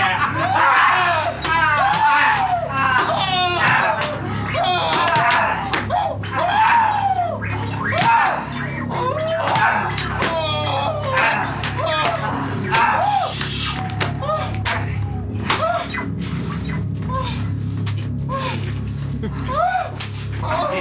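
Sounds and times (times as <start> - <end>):
person screaming: 0.0 - 15.9
laughter: 0.0 - 17.6, 18.2 - 20.7.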